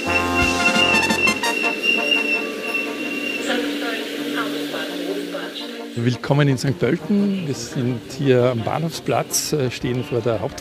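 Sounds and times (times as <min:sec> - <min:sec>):
high sustained squealing tones: 0:00.0 - 0:04.4
ÖBB Railjet train rumbling along the rails: 0:00.0 - 0:10.5
speech: 0:06.0 - 0:10.5.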